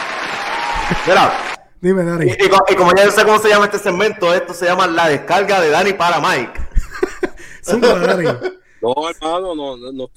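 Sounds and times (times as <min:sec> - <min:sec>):
applause: 0:00.0 - 0:01.6
laughter: 0:00.6 - 0:01.6, 0:06.4 - 0:08.6
speech: 0:00.9 - 0:06.6, 0:07.6 - 0:10.1.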